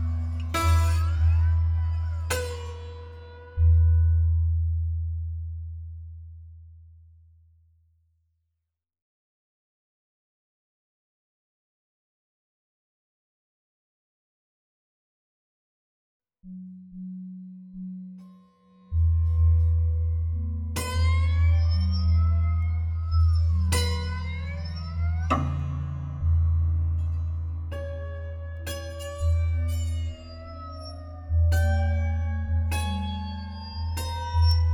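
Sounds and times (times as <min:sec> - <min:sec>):
hum: 0:00.0 - 0:07.5, 0:18.9 - 0:34.7.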